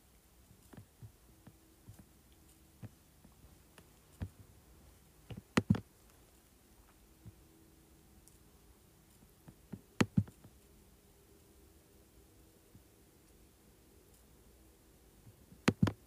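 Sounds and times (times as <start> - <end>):
faint low hum: 0.0 - 16.0
keyboard and mouse clicks and taps: 5.3 - 5.9, 9.4 - 10.6, 15.3 - 16.0.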